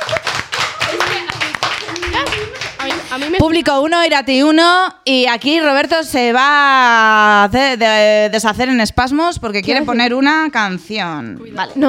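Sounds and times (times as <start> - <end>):
applause, hands clapping: 0.0 - 3.6
speech: 3.2 - 11.8.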